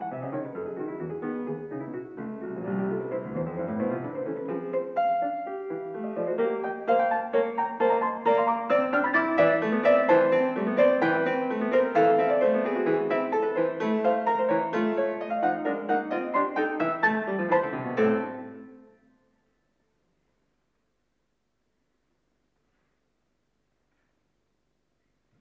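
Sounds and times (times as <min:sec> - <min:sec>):
fugue in a minor: 0:00.0 - 0:19.3.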